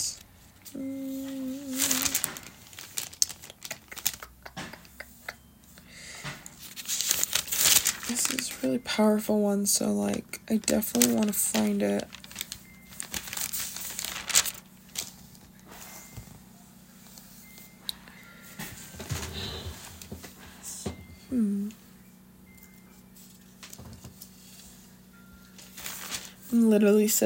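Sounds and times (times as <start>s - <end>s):
pages of a Bible rustling as flipped through: 1.1s - 4.3s, 6.5s - 8.6s, 10.6s - 16.2s, 25.5s - 26.6s
speech: 8.6s - 12.2s, 26.8s - 27.2s.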